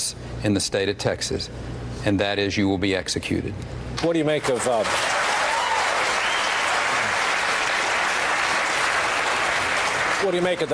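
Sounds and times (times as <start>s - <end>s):
speech: 0.1s - 5.2s, 10.2s - 10.7s
debate audience applause after a mention of executions in Texas: 4.4s - 10.7s.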